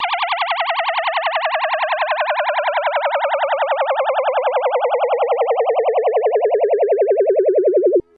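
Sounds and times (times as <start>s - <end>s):
spaceship landing: 0.0s - 8.0s.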